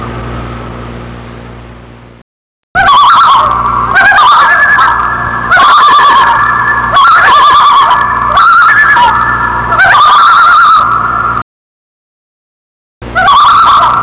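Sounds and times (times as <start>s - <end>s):
loon calling with quavering tremolo bursts: 2.8s - 11.4s, 13.1s - 14.0s.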